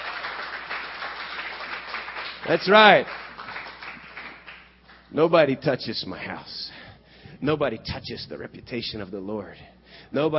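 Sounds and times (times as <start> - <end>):
audience hand clapping: 0.0 - 5.1
speech: 2.4 - 3.2, 5.1 - 6.8, 7.4 - 10.3.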